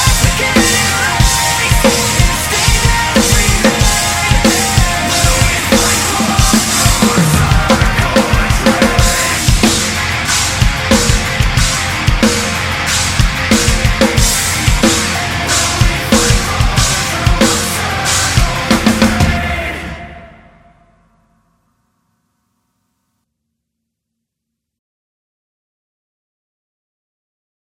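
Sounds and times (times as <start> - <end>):
drums playing: 0.0 - 20.2.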